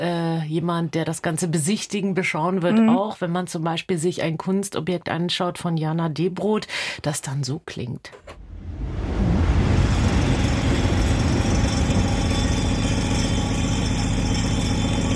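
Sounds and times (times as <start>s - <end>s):
speech: 0.0s - 8.4s
train rushing past: 8.3s - 15.0s.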